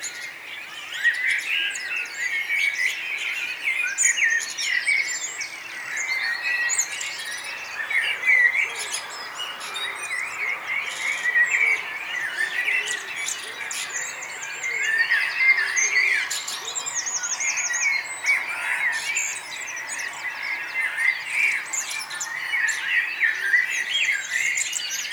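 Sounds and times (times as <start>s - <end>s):
mixed birdsong from several birds: 0.0s - 25.1s.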